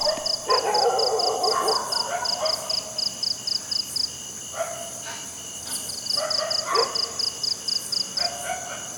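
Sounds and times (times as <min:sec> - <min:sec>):
crickets chirping: 0:00.0 - 0:08.9.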